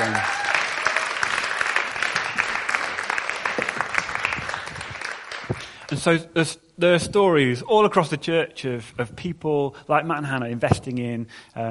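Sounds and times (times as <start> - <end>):
audience applause: 0.0 - 6.0
speech: 6.0 - 11.6.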